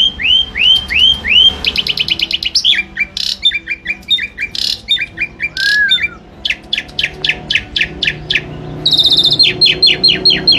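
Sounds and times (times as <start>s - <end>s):
Asian pied starling singing: 0.0s - 10.5s.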